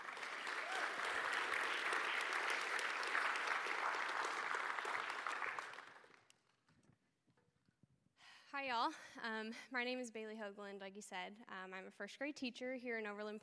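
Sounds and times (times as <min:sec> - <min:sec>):
audience applause at an evening church gathering: 0:00.0 - 0:06.3
speech: 0:08.6 - 0:13.4.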